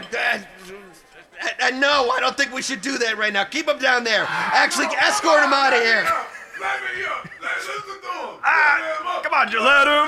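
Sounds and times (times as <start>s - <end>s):
speech: 0.1s - 10.0s
crowd going wild, yelling and cheering: 4.1s - 6.3s
laughter: 4.2s - 8.1s.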